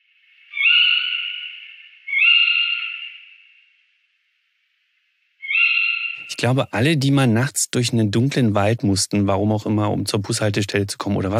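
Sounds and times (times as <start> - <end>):
female owl screeching: 0.5 - 3.8, 5.4 - 6.4
speech: 6.3 - 11.3.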